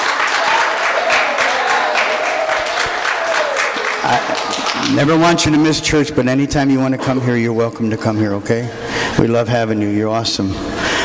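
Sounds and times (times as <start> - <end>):
audience applauding in church: 0.0 - 5.8
speech: 4.1 - 10.8.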